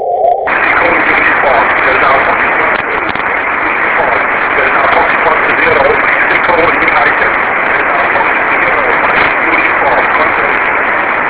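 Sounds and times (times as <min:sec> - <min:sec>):
single-sideband radio signal from 820 km: 0:00.0 - 0:11.2.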